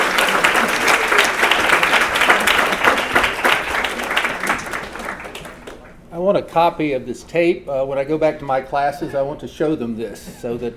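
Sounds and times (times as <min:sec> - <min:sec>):
crowd applauding to welcome a speaker: 0:00.0 - 0:06.0
speech: 0:06.3 - 0:10.7.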